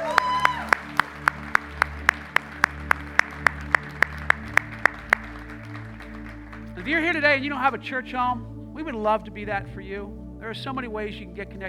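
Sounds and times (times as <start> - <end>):
congregation clapping in celebration at a church service: 0.0 - 8.2
music: 0.0 - 11.6
speech: 6.9 - 11.6.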